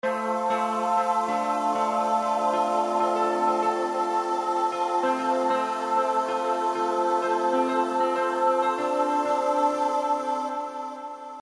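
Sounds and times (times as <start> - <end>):
piano: 0.0 - 11.3.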